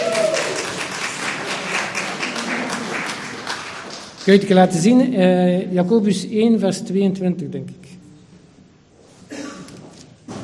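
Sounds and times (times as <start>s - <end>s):
audience applause: 0.0s - 4.5s
speech: 4.2s - 7.8s.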